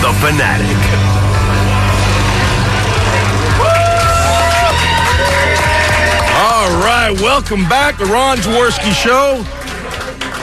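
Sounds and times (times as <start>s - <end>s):
speech: 0.1s - 1.1s, 6.6s - 9.6s
crowd cheering riled up by a cheerleader: 1.5s - 10.4s
whoops and shouts: 3.6s - 6.5s.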